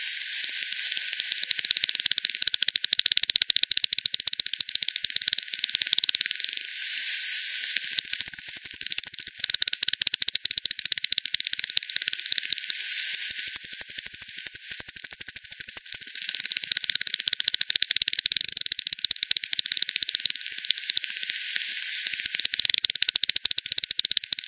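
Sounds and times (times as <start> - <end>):
bat clicking calls: 0.2 - 6.7, 7.7 - 24.4.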